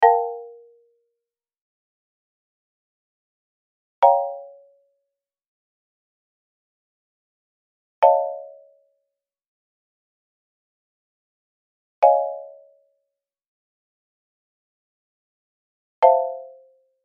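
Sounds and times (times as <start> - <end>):
marimba: 0.0 - 1.0, 4.0 - 4.8, 8.0 - 8.8, 12.0 - 12.8, 16.0 - 16.8.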